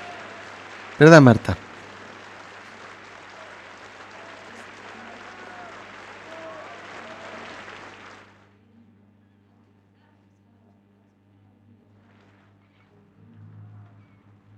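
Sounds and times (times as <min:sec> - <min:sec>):
audience applause on a music track: 0:00.0 - 0:08.5
speech: 0:01.0 - 0:01.6.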